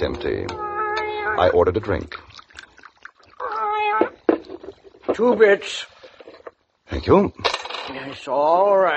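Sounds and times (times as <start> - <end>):
speech: 0.0 - 2.3, 5.2 - 5.9, 6.9 - 8.9
cat meowing on a bar: 0.4 - 1.6, 3.4 - 4.3.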